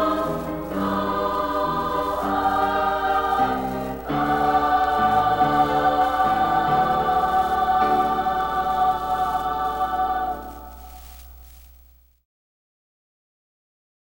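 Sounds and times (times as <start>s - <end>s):
chorus singing a Spanish ballad: 0.0s - 11.2s.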